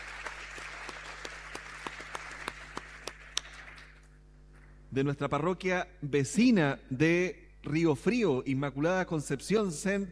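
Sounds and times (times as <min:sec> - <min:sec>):
audience applause in a church: 0:00.0 - 0:04.0
speech: 0:04.9 - 0:10.1.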